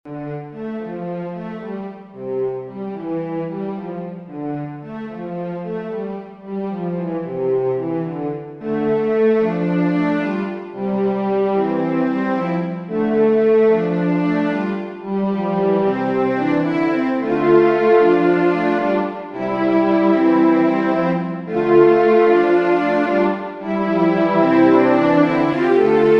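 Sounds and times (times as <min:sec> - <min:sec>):
cellos playing divisions on a ground: 0:00.1 - 0:26.1.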